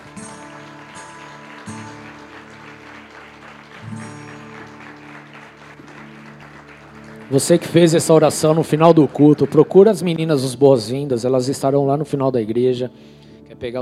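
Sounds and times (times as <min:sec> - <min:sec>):
church audience applauding: 0:00.0 - 0:11.0
speech: 0:07.3 - 0:13.7.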